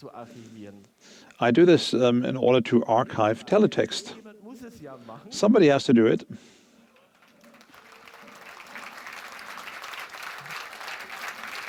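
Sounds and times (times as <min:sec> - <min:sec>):
speech: 0:00.0 - 0:06.5
audience applause: 0:06.9 - 0:11.6.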